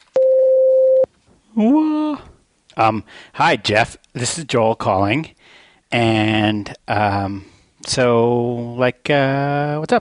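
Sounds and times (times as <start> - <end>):
voicemail beep: 0.2 - 1.1
speech: 1.6 - 9.9.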